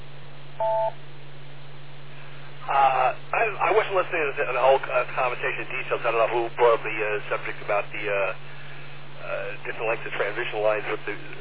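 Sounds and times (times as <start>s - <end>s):
steady low hum and band-limited hiss: 0.0s - 11.4s
two-tone radio repeater beep: 0.6s - 1.0s
speech: 0.6s - 1.1s, 3.9s - 8.4s, 9.2s - 11.4s
noisy radio transmission burst: 2.6s - 8.6s, 9.2s - 11.4s.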